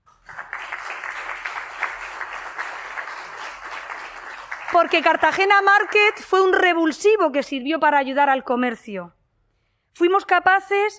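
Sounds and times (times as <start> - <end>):
crowd applause: 0.2 - 6.2
speech: 4.7 - 9.2, 10.0 - 10.9.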